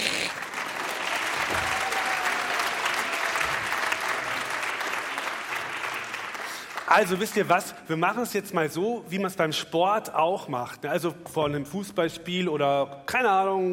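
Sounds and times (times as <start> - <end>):
audience clapping: 0.0 - 7.6
speech: 6.9 - 13.7.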